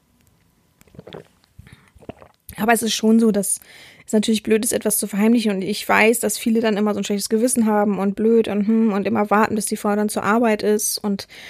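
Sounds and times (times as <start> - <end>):
person sipping coffee: 0.8 - 2.5
speech: 2.6 - 11.4.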